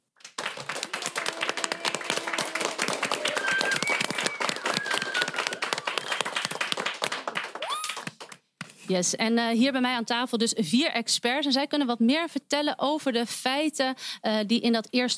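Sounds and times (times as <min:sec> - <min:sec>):
applause for fellow students: 0:00.0 - 0:08.5
speech: 0:08.9 - 0:15.1.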